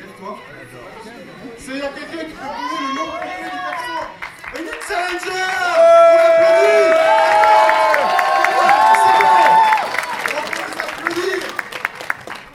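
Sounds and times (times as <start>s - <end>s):
speech: 0.2s - 3.5s
audience applause: 2.7s - 12.5s.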